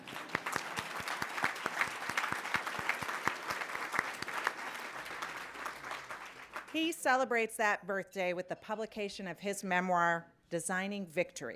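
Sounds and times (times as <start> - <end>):
audience applauding: 0.0 - 6.8
speech: 6.8 - 11.5.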